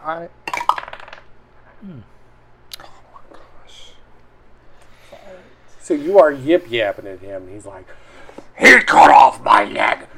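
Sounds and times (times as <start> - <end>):
speech: 0.1 - 0.4, 1.8 - 2.2, 5.9 - 8.0, 8.6 - 10.1
dice rolling across a table in a tabletop role-playing game: 0.5 - 1.3.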